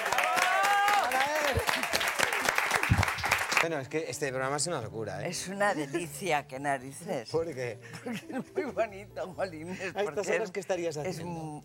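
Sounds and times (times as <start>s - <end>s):
audience applause: 0.0s - 3.7s
speech: 3.6s - 11.6s.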